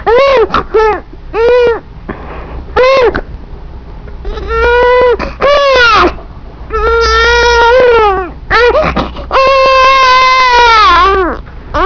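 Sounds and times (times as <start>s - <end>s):
baby: 0.0s - 1.8s, 2.8s - 3.3s, 4.2s - 11.8s.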